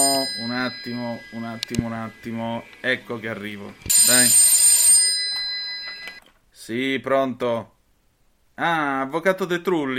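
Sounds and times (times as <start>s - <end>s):
telephone ringing with electronic trill: 0.0s - 2.4s, 3.8s - 6.3s
speech: 0.7s - 4.5s, 6.7s - 7.8s, 8.6s - 9.9s.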